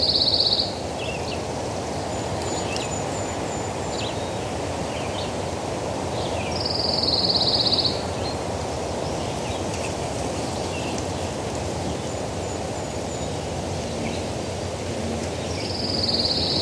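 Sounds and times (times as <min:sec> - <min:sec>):
pine warbler singing on the shore of Rocky Lake in Whiting, Maine: 0:00.0 - 0:16.6.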